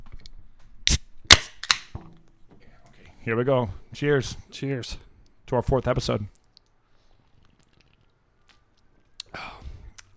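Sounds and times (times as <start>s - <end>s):
beer can opening: 0.9s - 1.9s
speech: 3.2s - 6.4s.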